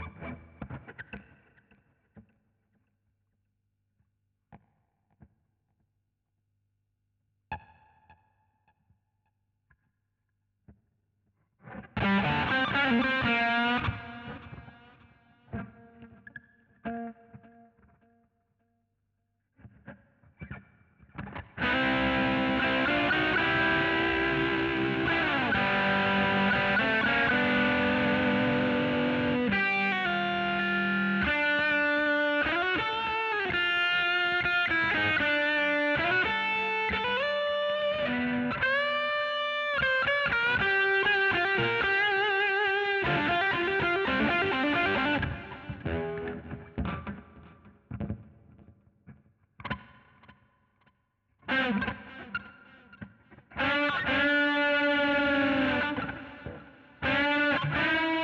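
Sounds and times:
guitar solo: 0:00.0 - 0:01.7, 0:11.7 - 0:18.0, 0:21.2 - 0:48.7, 0:51.4 - 0:58.2.

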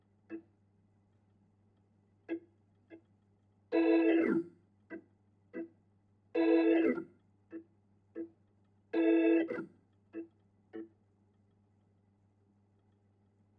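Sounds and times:
Hammond organ: 0:03.7 - 0:05.7, 0:06.4 - 0:07.0, 0:09.0 - 0:10.8.

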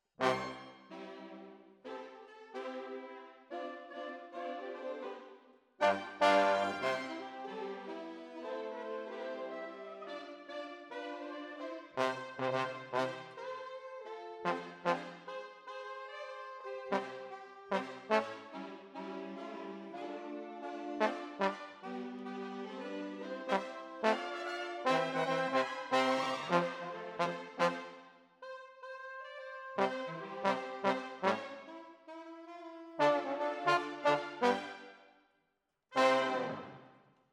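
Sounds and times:
trombones: 0:00.2 - 0:01.1, 0:05.8 - 0:13.5, 0:14.4 - 0:28.1, 0:29.2 - 0:35.0, 0:36.0 - 0:36.9.

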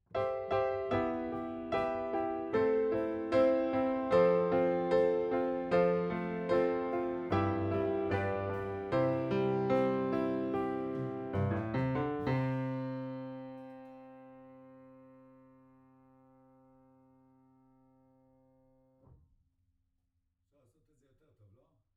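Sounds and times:
piano note B: 0:00.1 - 0:16.9.

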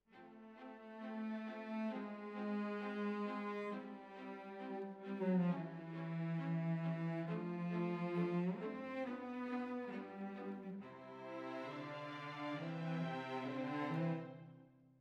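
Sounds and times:
cellos playing: 0:00.1 - 0:14.5.

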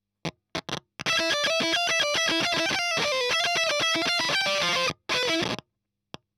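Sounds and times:
fuzz guitar ending: 0:01.1 - 0:05.6.

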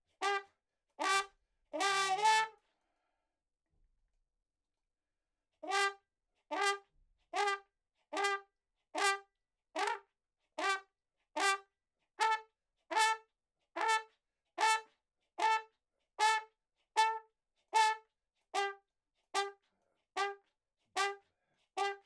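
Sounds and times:
ragtime trumpet in a room: 0:00.2 - 0:02.6, 0:05.6 - 0:18.8, 0:19.4 - 0:19.6, 0:20.2 - 0:20.4, 0:21.0 - 0:22.0.

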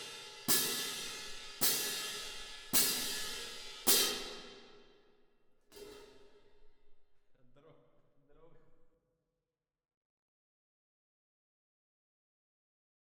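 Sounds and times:
cymbal: 0:00.0 - 0:05.1.

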